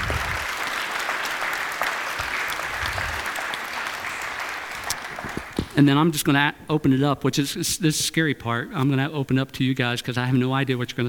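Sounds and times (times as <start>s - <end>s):
round of applause from audience: 0.0s - 5.8s
speech: 5.8s - 11.0s.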